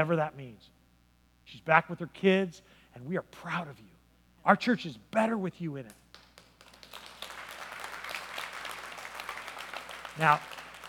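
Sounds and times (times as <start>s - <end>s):
speech: 0.0s - 0.8s, 1.5s - 6.0s, 10.2s - 10.6s
audience clapping: 5.9s - 10.8s.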